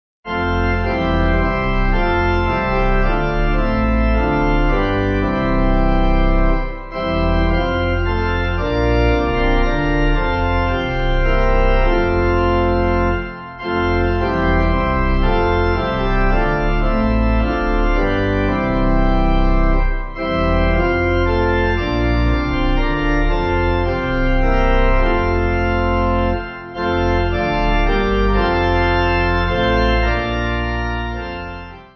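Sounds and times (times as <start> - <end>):
pipe organ: 0.3 - 31.9.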